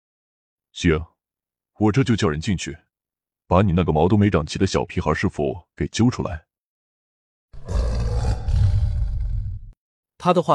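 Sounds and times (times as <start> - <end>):
speech: 0.8 - 1.1, 1.8 - 2.8, 3.5 - 6.5, 10.2 - 10.5
strange beast roar from a cave: 7.6 - 9.8.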